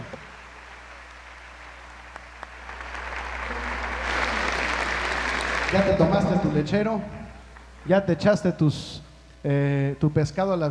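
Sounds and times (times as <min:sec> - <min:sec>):
audience applause for orchestra: 0:00.0 - 0:06.7
speech: 0:05.7 - 0:07.2, 0:07.8 - 0:10.7.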